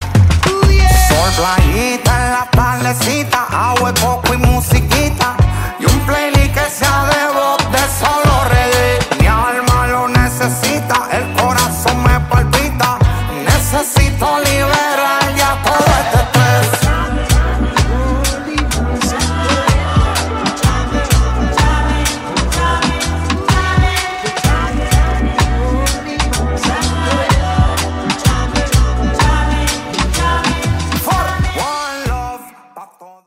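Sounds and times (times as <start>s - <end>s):
rasta reggae music: 0.0s - 33.2s.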